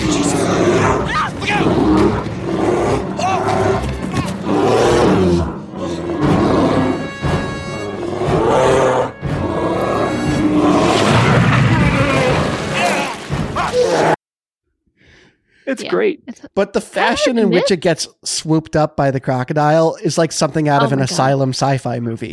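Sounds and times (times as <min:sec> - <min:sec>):
bear roaring: 0:00.0 - 0:14.2
speech: 0:15.8 - 0:22.3.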